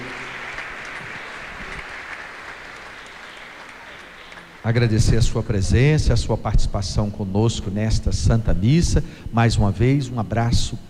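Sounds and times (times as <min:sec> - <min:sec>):
audience applauding: 0:00.0 - 0:05.4
speech: 0:04.6 - 0:10.8.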